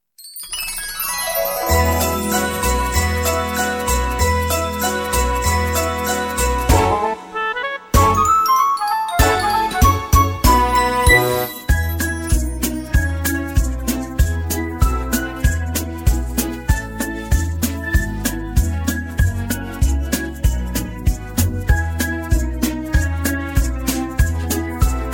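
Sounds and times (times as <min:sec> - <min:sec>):
instrumental music: 0:00.5 - 0:25.1.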